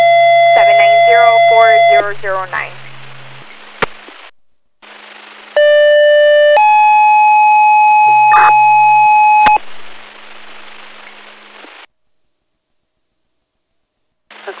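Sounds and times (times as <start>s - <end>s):
fire dispatch pager tones over radio: 0.0s - 2.2s, 5.6s - 9.6s
radio static: 0.0s - 5.6s, 8.1s - 8.8s, 9.4s - 11.9s, 14.3s - 14.5s
speech: 2.1s - 2.7s.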